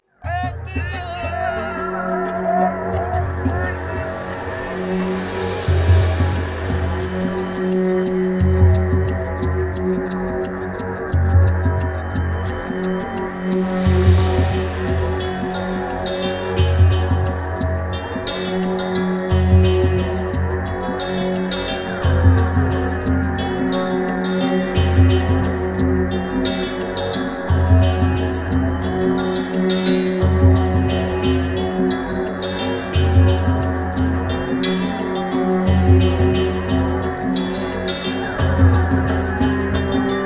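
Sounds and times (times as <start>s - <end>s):
catacombs ambience: 0.2s - 40.2s.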